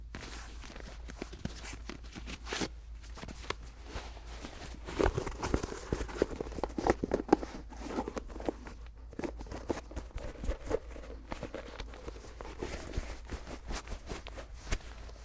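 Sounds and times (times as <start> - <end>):
sneakers being laced: 0.1 - 15.2.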